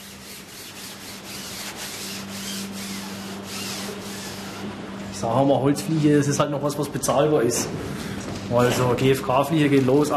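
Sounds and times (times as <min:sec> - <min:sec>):
fabric pressed and rubbed onto wing ribs: 0:00.0 - 0:04.7
speech: 0:05.2 - 0:10.1.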